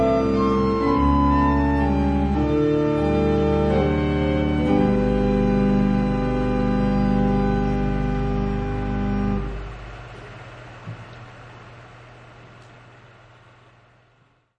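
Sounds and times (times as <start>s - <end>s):
organ piece: 0.0s - 10.2s.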